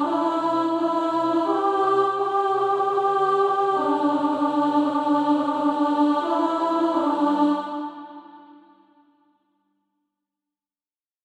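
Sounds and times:
alto voice singing: 0:00.0 - 0:08.7.

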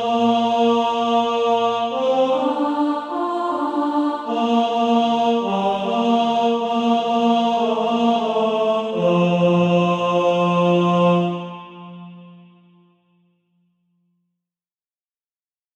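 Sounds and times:
tenor voice singing SATB practice music: 0:00.0 - 0:12.3.

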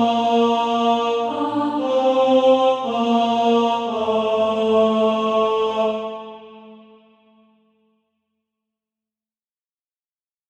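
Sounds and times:
tenor singing: 0:00.0 - 0:07.0.

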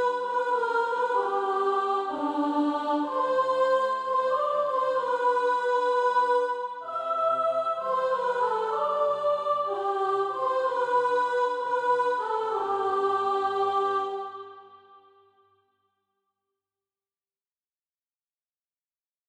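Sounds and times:
soprano singing SATB practice music: 0:00.0 - 0:14.8.

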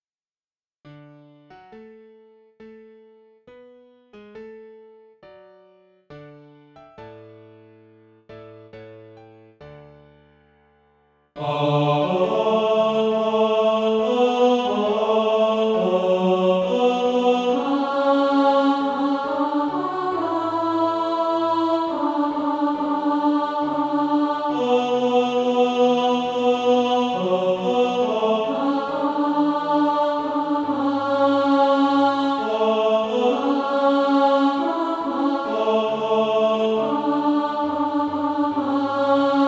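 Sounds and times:
tenor singing: 0:11.4 - 0:39.4.

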